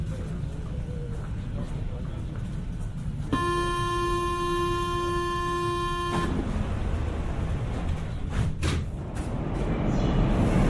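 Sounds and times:
Paris Métro train rumbling: 0.0 - 10.6
door warning buzzer: 3.4 - 6.4.

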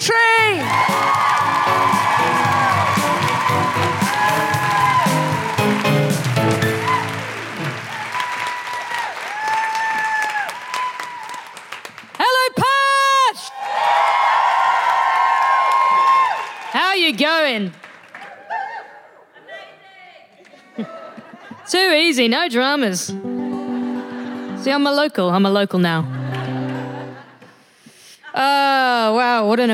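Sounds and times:
speech: 0.0 - 0.9, 17.2 - 17.9, 21.7 - 23.2, 24.6 - 26.2, 28.4 - 29.7
crowd whooping and cheering: 0.3 - 11.7, 13.1 - 16.8, 18.2 - 19.2
crowd clapping: 0.4 - 12.7, 13.4 - 18.8, 26.2 - 27.5
laughter: 19.2 - 21.7, 26.0 - 27.7.

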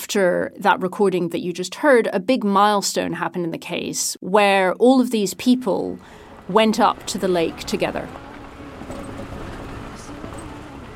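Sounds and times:
speech: 0.1 - 8.3
convoy of 4x4 cars driving: 5.4 - 10.9.

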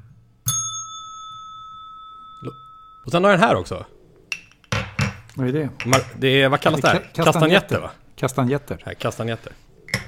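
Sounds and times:
reception desk bell ding: 0.4 - 3.1
speech: 2.4 - 4.0, 5.4 - 9.7.

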